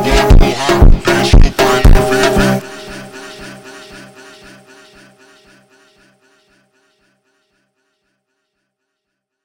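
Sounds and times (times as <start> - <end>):
alien horror funk super slowed: 0.0 - 4.8.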